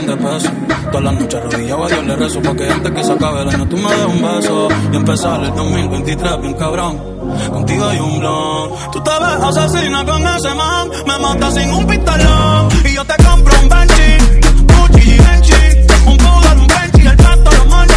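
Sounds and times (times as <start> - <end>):
baile funk music: 0.0 - 17.9.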